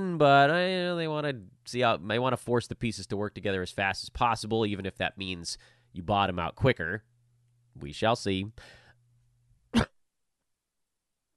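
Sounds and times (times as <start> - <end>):
speech: 0.0 - 7.1, 7.8 - 8.8, 9.7 - 10.0
deep breath: 5.6 - 6.0, 8.6 - 9.0
person coughing: 9.8 - 10.0.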